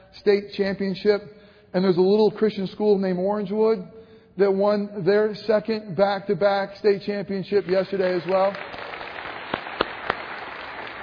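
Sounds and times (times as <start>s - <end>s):
speech: 0.2s - 8.8s
audience clapping: 7.6s - 11.0s.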